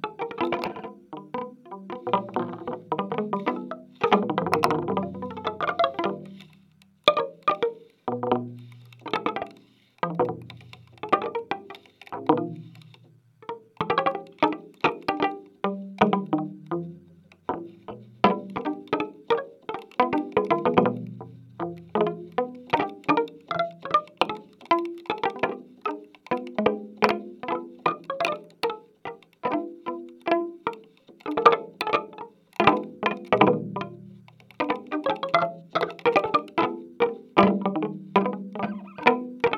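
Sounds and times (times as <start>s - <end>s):
bouncy drumming: 0.0s - 6.5s, 7.1s - 28.6s, 29.4s - 39.5s.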